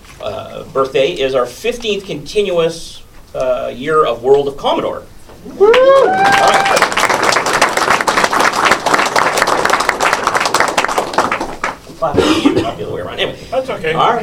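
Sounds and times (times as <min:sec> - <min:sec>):
speech: 0:00.2 - 0:07.0, 0:12.0 - 0:14.2
audience applause: 0:05.6 - 0:11.8.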